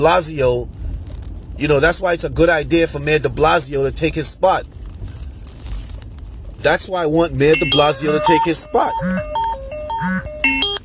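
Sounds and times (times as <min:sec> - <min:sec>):
speech: 0:00.0 - 0:00.8, 0:01.6 - 0:04.8, 0:06.6 - 0:09.4, 0:10.0 - 0:10.3
alarm going off: 0:07.5 - 0:10.8.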